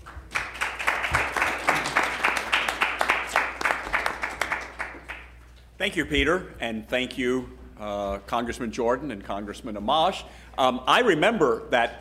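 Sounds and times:
audience applause: 0.0s - 5.4s
speech: 5.8s - 11.9s.

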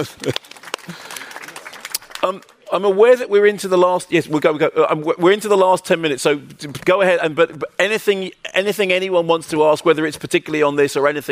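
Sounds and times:
speech: 0.0s - 1.0s, 2.2s - 11.2s
sparse audience applause: 0.0s - 2.7s.

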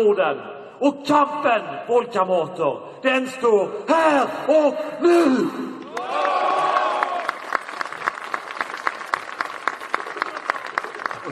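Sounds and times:
speech: 0.0s - 5.8s
crowd applause: 5.8s - 11.3s.

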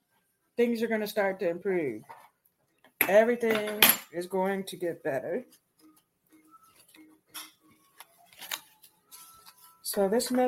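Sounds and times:
speech: 0.6s - 2.2s, 3.1s - 5.6s, 9.9s - 10.4s
playing cards shuffling: 7.8s - 10.4s.

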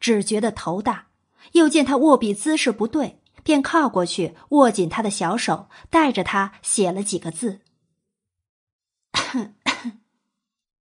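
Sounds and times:
speech: 0.0s - 7.6s, 9.3s - 10.0s
cough: 9.2s - 10.1s.

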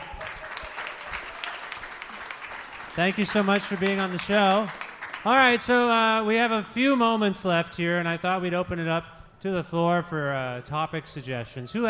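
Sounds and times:
audience applause: 0.0s - 5.9s
speech: 3.0s - 11.8s.

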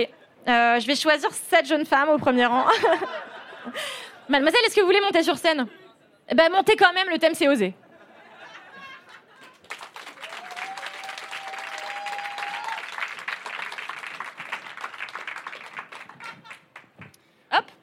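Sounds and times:
speech: 0.0s - 7.8s
laughter: 2.6s - 4.3s, 7.8s - 9.8s, 15.8s - 16.8s
audience applause: 9.4s - 17.0s.

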